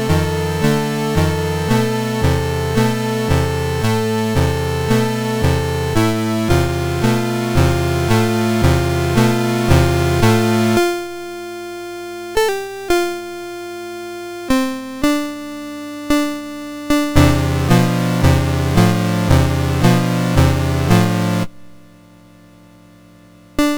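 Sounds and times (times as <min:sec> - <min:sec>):
prelude in A minor on MOS6581R2 SID chip: 0:00.0 - 0:11.4, 0:14.4 - 0:21.6, 0:23.6 - 0:23.7.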